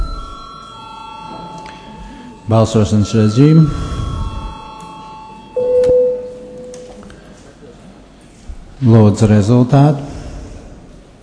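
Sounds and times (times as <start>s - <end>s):
voting bell ringing: 0.0s - 6.9s
speech: 2.5s - 4.0s, 8.8s - 10.1s.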